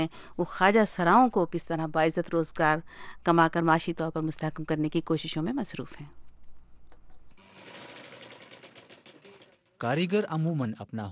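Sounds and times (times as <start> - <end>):
speech: 0.0 - 6.2, 9.8 - 11.1
sewing machine stitching in tailor shop: 7.4 - 9.8.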